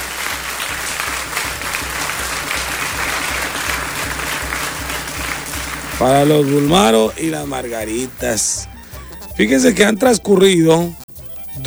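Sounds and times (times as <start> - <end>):
applause: 0.0 - 8.1
speech: 6.0 - 8.8, 9.4 - 11.0.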